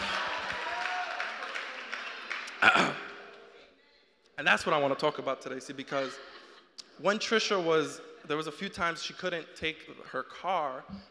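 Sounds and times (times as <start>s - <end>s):
audience cheering: 0.0s - 2.6s
audience clapping: 0.0s - 3.6s
speech: 2.6s - 3.0s, 4.4s - 6.4s, 7.0s - 11.1s.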